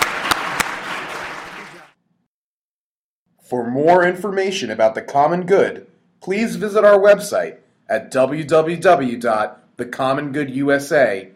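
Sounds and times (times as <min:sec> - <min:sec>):
audience applause: 0:00.0 - 0:02.0
speech: 0:03.5 - 0:11.3.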